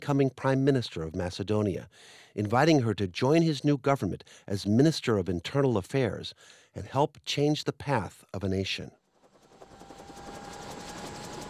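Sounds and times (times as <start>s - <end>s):
speech: 0.0s - 9.0s
government helicopter taking off from dead grass along the Serbian border: 9.0s - 11.4s.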